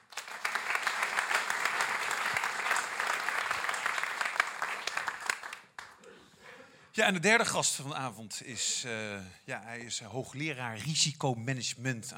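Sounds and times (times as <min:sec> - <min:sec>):
audience applause: 0:00.0 - 0:06.0
speech: 0:07.0 - 0:12.1.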